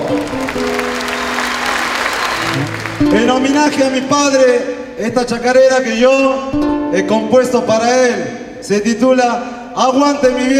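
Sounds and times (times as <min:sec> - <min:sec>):
crowd applauding: 0:00.0 - 0:04.4
speech: 0:03.0 - 0:10.5.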